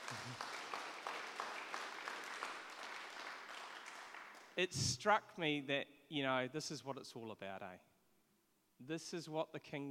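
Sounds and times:
audience applause: 0:00.0 - 0:04.5
speech: 0:04.6 - 0:07.9, 0:08.8 - 0:09.9.

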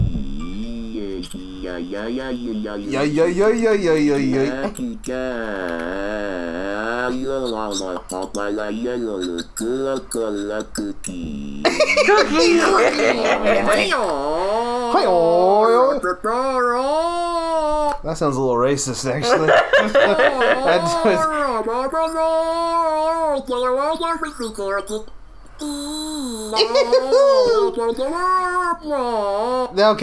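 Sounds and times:
Pink Trombone vocal tract synthesizer voice: 0:00.0 - 0:11.3
speech: 0:01.6 - 0:30.0
laughter: 0:02.9 - 0:04.9, 0:11.6 - 0:15.2, 0:19.2 - 0:21.9, 0:26.5 - 0:28.0.

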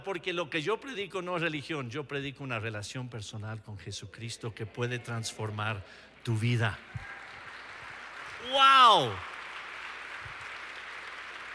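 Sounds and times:
speech: 0:00.0 - 0:07.1, 0:08.5 - 0:09.3
audience applause: 0:06.5 - 0:11.5.

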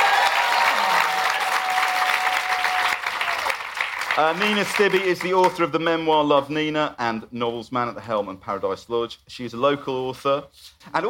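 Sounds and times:
audience applause: 0:00.0 - 0:05.6
speech: 0:04.2 - 0:11.0.

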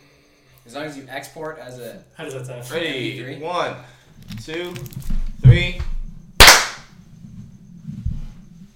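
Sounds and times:
speech: 0:00.7 - 0:05.9
hand clap for syncing recordings: 0:06.4 - 0:06.8.

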